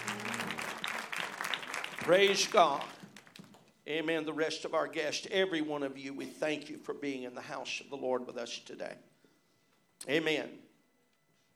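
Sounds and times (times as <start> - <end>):
audience clapping: 0.0 - 3.7
faint low hum: 0.0 - 11.5
speech: 2.1 - 3.0, 3.9 - 9.1, 10.0 - 10.7.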